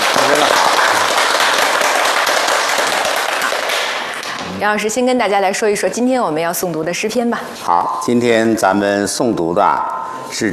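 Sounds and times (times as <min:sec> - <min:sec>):
audience applause: 0:00.0 - 0:04.3
speech: 0:04.6 - 0:10.5.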